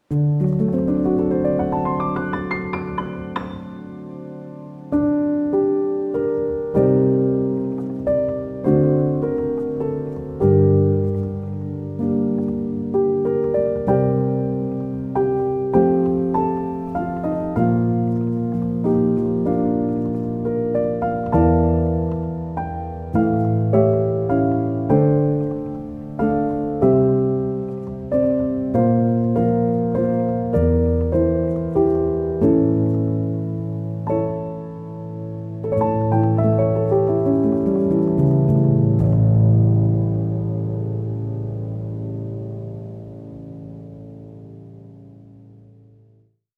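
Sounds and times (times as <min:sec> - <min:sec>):
piano music: 0:00.0 - 0:46.5.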